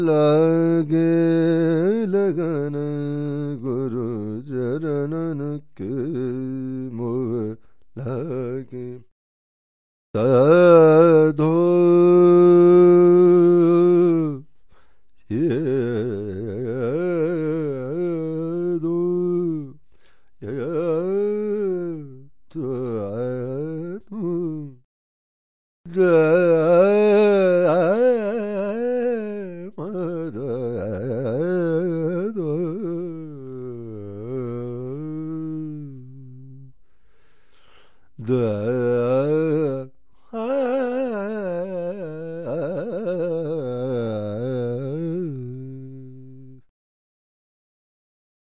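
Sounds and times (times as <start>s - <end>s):
person singing Indian singing: 0.0s - 9.0s, 10.2s - 14.4s, 15.3s - 19.8s, 20.4s - 24.9s, 25.9s - 36.7s, 38.2s - 46.7s.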